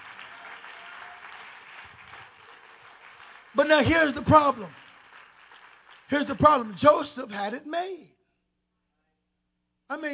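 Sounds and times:
audience clapping hands: 0.0s - 7.5s
speech: 3.6s - 4.8s, 6.1s - 8.2s, 9.9s - 10.1s.

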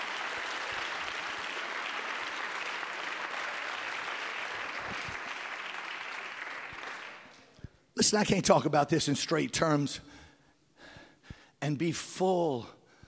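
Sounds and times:
audience clapping hands: 0.0s - 7.6s
speech: 8.0s - 10.2s, 11.7s - 12.8s.

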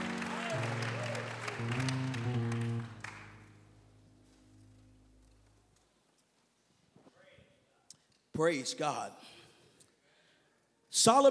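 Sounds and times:
audience clapping: 0.0s - 3.6s
sustained low musical chords: 0.0s - 5.5s
speech: 8.4s - 9.4s, 10.9s - 11.2s.

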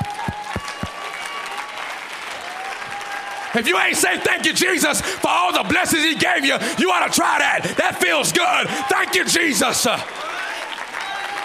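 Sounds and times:
audience clapping hands: 0.0s - 6.1s, 8.8s - 11.4s
speech: 3.6s - 10.3s.

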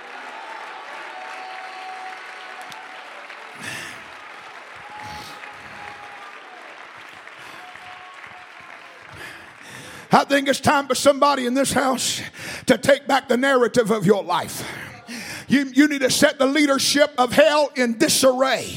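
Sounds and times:
audience clapping hands: 0.0s - 11.5s
speech: 10.1s - 14.8s, 15.5s - 18.7s.

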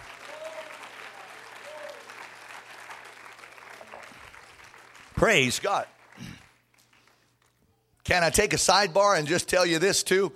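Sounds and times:
audience clapping hands: 0.0s - 7.6s
speech: 5.2s - 6.3s, 8.1s - 10.3s.

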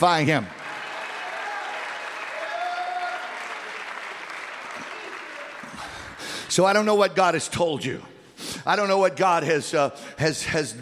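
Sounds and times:
speech: 0.0s - 0.6s, 6.6s - 10.7s
audience clapping hands: 0.2s - 6.6s.

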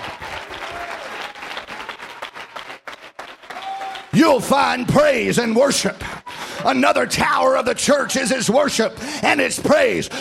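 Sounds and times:
crowd clapping: 0.0s - 4.9s
speech: 4.1s - 10.2s.

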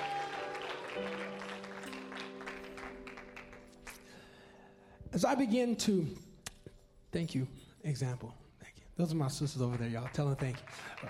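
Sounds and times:
audience clapping: 0.0s - 4.3s, 9.2s - 11.0s
speech: 1.0s - 1.3s, 5.1s - 6.3s, 7.1s - 8.4s, 9.0s - 11.0s.

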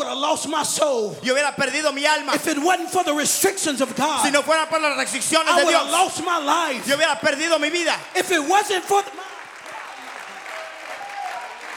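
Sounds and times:
speech: 0.2s - 9.3s
congregation applause at a bilingual church service: 5.4s - 11.7s.

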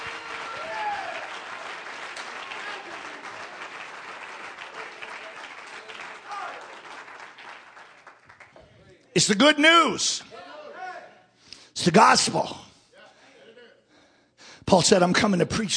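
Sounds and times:
scattered cheers and shouts: 0.0s - 1.5s, 2.4s - 3.6s, 6.2s - 6.8s
crowd clapping: 0.0s - 9.0s
speech: 9.2s - 10.3s, 11.9s - 12.6s, 14.7s - 15.7s.

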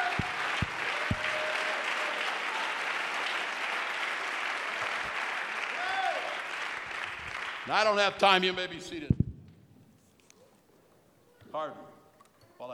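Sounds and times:
audience clapping hands: 0.0s - 8.4s
speech: 7.7s - 9.2s, 11.6s - 11.9s.

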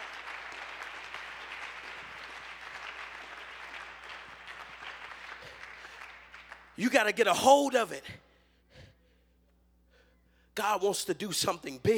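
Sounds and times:
audience clapping hands: 0.0s - 7.5s
speech: 6.8s - 8.3s, 10.6s - 11.9s.

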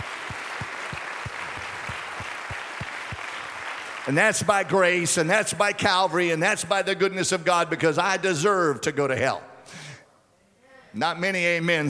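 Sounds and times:
audience clapping: 0.0s - 5.2s
speech: 4.1s - 9.8s, 10.9s - 11.8s.

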